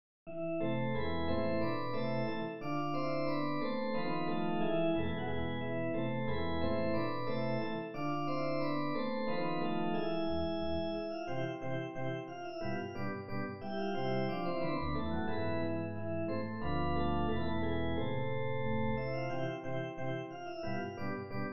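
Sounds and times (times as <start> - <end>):
minor-key rigaudon: 1.0 - 21.5.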